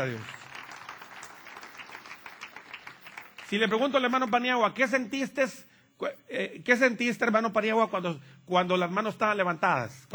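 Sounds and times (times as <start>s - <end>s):
speech: 0.0s - 0.4s, 3.5s - 10.1s
faint applause from a church congregation: 0.0s - 3.8s.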